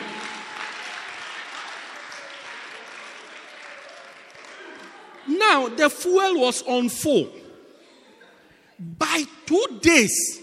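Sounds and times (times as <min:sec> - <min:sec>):
audience clapping: 0:00.0 - 0:05.3
speech: 0:05.3 - 0:07.4, 0:09.2 - 0:10.4.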